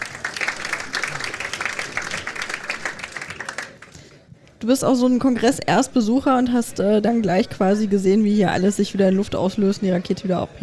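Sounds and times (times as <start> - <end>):
audience applause: 0.0 - 4.2
speech: 4.6 - 10.6.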